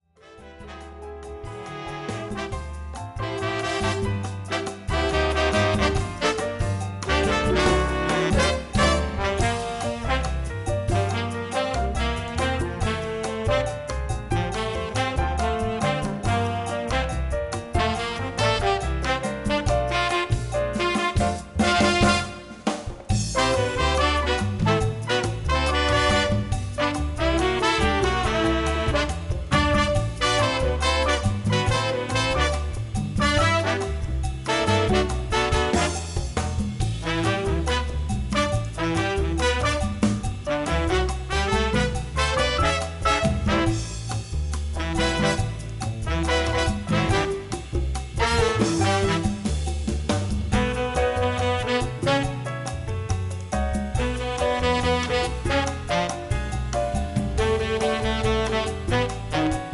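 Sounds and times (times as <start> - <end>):
jazz ensemble playing: 0.2 - 59.7.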